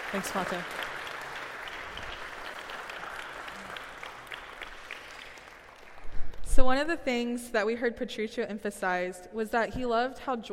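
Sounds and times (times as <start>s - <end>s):
soft audience applause at a church community gathering: 0.0s - 6.2s
speech: 0.1s - 0.8s, 6.6s - 10.5s.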